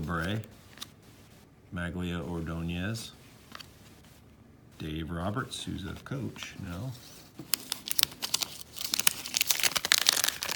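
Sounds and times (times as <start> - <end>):
speech: 0.1 - 0.6, 1.7 - 3.2, 4.8 - 7.7
wrapper of an Upper Deck wax pack of baseball cards being ripped open: 7.5 - 10.5.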